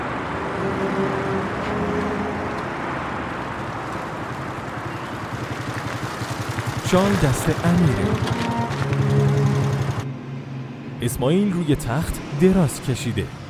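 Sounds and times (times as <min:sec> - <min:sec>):
motorcycle riding away: 0:00.2 - 0:10.1
speech: 0:06.9 - 0:08.5, 0:11.0 - 0:13.4.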